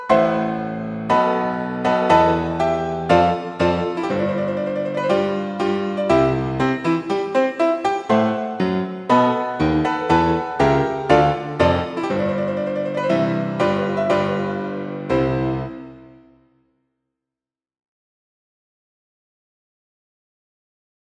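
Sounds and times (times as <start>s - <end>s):
wedding march music: 0.2s - 16.0s.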